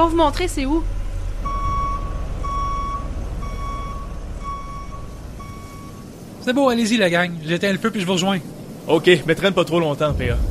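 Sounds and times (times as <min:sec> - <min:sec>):
speech: 0:00.0 - 0:01.0, 0:06.4 - 0:10.4
tow truck engine rumble: 0:00.0 - 0:10.4
tow truck reverse alarm beeping: 0:01.4 - 0:06.1.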